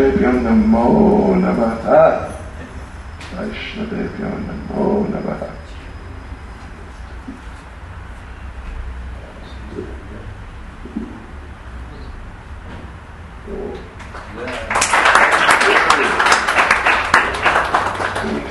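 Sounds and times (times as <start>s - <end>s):
speech: 0.2s - 2.4s, 3.3s - 5.6s
audience applause: 14.0s - 18.4s.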